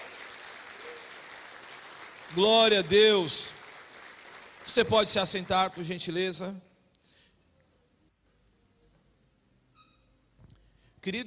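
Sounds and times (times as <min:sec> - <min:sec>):
crowd applause: 0:00.0 - 0:06.2
speech: 0:02.3 - 0:03.6, 0:04.7 - 0:06.7, 0:11.0 - 0:11.2.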